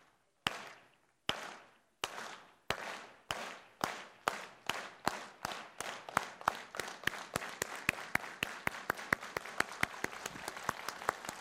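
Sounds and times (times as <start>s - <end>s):
audience clapping along in rhythm: 0.4s - 11.3s.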